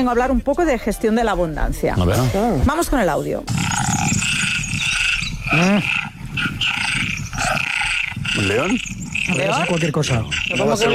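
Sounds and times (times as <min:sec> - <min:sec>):
speech: 0:00.0 - 0:03.9, 0:05.5 - 0:06.5, 0:08.4 - 0:10.9
low rough croaking: 0:02.0 - 0:10.9
tree frogs calling in high-pitched trills: 0:03.5 - 0:10.9.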